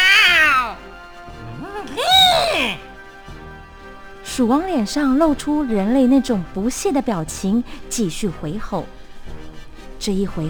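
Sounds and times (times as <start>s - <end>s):
person imitating a cat meow: 0.0s - 0.8s, 1.6s - 2.8s
speech: 4.4s - 9.0s, 10.0s - 10.4s.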